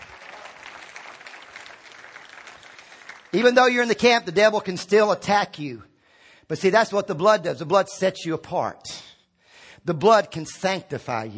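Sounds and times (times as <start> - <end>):
audience clapping: 0.0 - 4.3
speech: 3.3 - 5.9, 6.5 - 9.0, 9.8 - 11.3.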